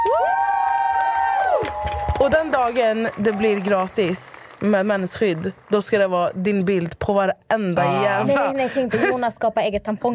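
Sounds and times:
audience applause and cheering: 0:00.0 - 0:06.5
speech: 0:02.2 - 0:10.1.

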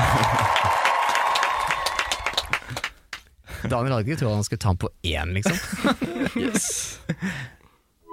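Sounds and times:
laughter: 0:00.0 - 0:00.8, 0:05.4 - 0:07.4
faint cheering: 0:00.0 - 0:02.6
crowd applauding: 0:00.0 - 0:03.2
speech: 0:03.7 - 0:07.6.

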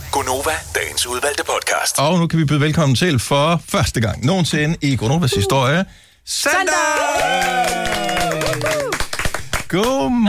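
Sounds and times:
speech: 0:00.2 - 0:09.0, 0:09.7 - 0:10.2
clapping applause: 0:06.9 - 0:10.1.

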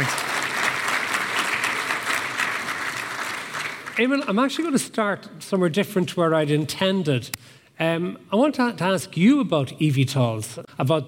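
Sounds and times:
audience applauding a guest welcomed on stage: 0:00.0 - 0:04.3
speech: 0:04.0 - 0:11.0.

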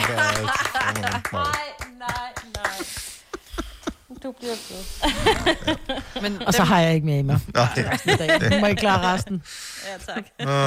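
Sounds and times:
laughter: 0:00.0 - 0:01.5, 0:02.6 - 0:04.3, 0:05.0 - 0:10.6
applause: 0:00.0 - 0:02.9
speech: 0:04.4 - 0:10.6.

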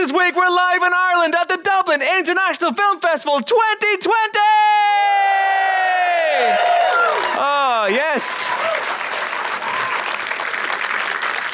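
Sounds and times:
speech: 0:00.1 - 0:05.2, 0:07.4 - 0:08.9
live audience cheering and whooping: 0:04.8 - 0:11.5
clapping: 0:08.4 - 0:11.5.

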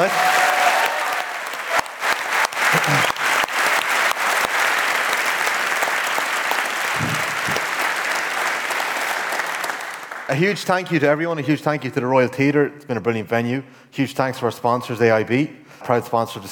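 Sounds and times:
live audience applause: 0:00.0 - 0:10.4
speech: 0:10.3 - 0:16.5.

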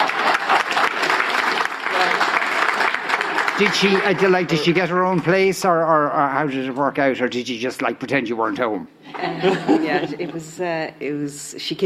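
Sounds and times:
audience applause: 0:00.0 - 0:05.6
speech: 0:03.6 - 0:11.8
laughter: 0:09.0 - 0:10.6.

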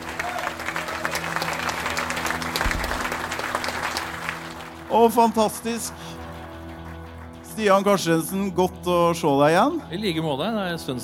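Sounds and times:
applause: 0:00.0 - 0:07.4
speech: 0:04.9 - 0:06.1, 0:07.6 - 0:11.0.

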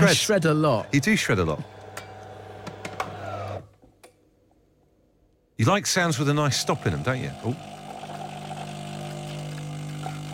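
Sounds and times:
speech: 0:00.0 - 0:01.8, 0:05.6 - 0:07.7
coffee machine brewing: 0:00.8 - 0:03.7, 0:06.2 - 0:10.3.

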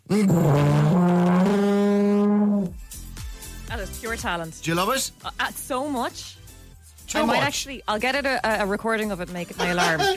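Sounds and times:
tuba being blown: 0:00.0 - 0:02.9
speech: 0:00.1 - 0:01.0, 0:04.1 - 0:06.4, 0:07.1 - 0:10.1.

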